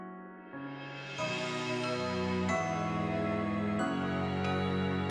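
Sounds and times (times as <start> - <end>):
off vocal instrumental music: 0.1 - 5.0.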